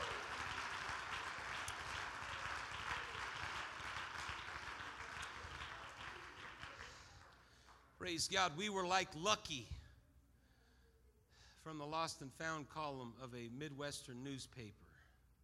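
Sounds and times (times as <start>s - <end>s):
audience clapping hands: 0.0s - 8.1s
speech: 8.0s - 9.8s, 11.7s - 14.8s.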